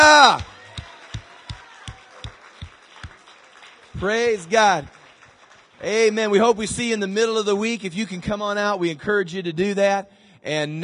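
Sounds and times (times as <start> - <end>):
audience clapping in unison: 0.0 - 7.1
speech: 4.0 - 5.0, 5.8 - 10.8.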